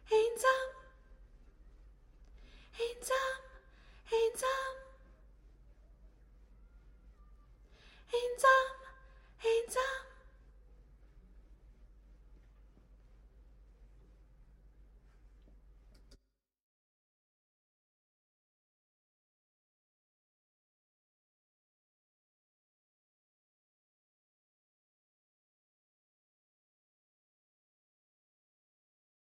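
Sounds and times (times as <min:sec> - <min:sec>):
background soprano voice: 0:00.0 - 0:01.1, 0:02.7 - 0:05.1, 0:08.0 - 0:10.4.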